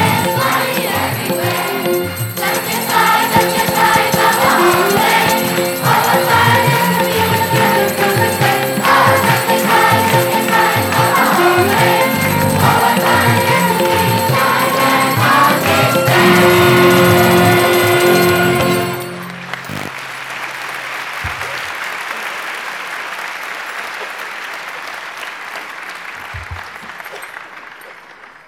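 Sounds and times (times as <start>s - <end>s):
children's choir singing: 0.0s - 19.2s.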